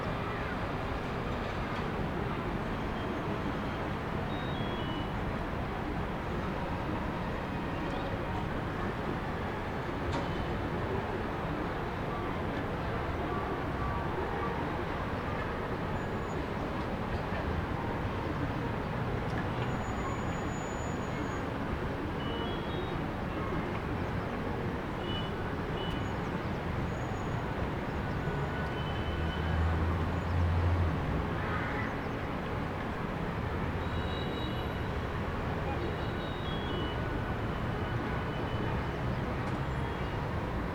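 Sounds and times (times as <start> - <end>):
distant city ambience heard from above: 0.0 - 40.7.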